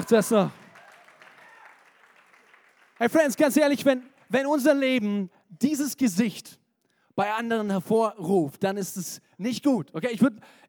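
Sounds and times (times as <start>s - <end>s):
crowd applause: 0.0s - 4.3s
speech: 0.1s - 0.6s, 3.0s - 6.6s, 7.2s - 10.6s.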